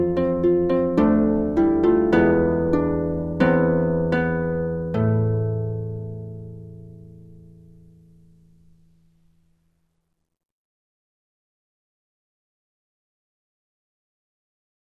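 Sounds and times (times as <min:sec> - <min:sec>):
instrumental music without vocal line: 0:00.0 - 0:09.8.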